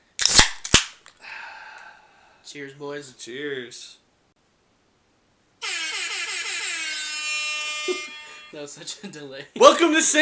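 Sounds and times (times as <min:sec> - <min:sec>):
beer cans cracking open: 0:00.2 - 0:01.2
speech: 0:02.5 - 0:04.0, 0:07.9 - 0:10.2.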